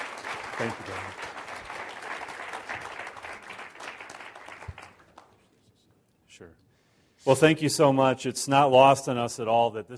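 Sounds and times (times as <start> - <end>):
church congregation applauding to welcome a speaker at a missions conference: 0.0 - 5.5
speech: 0.6 - 1.3, 6.4 - 6.6, 7.2 - 9.9.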